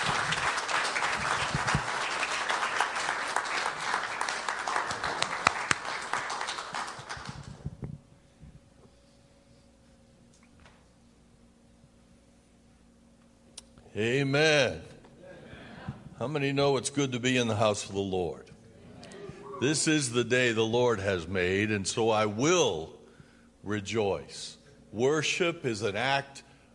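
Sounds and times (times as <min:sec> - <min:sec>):
church congregation applauding to welcome a guest pastor: 0:00.0 - 0:07.9
speech: 0:14.0 - 0:14.9, 0:16.2 - 0:18.5, 0:19.6 - 0:23.0, 0:23.6 - 0:26.5.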